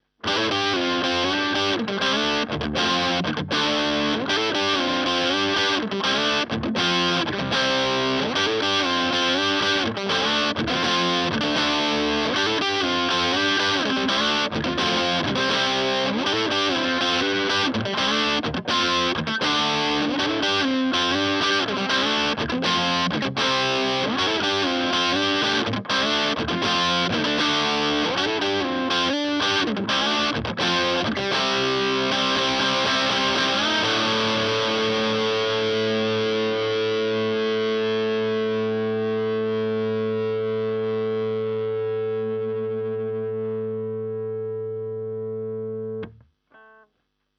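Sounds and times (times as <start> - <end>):
Epiphone SG electric guitar on bridge pickup: 0.0 - 46.9.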